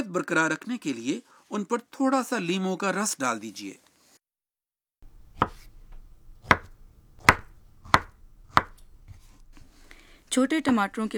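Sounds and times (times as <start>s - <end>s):
speech: 0.2s - 3.9s, 10.3s - 11.1s
knife chopping peeled pieces into cubes: 5.0s - 11.1s.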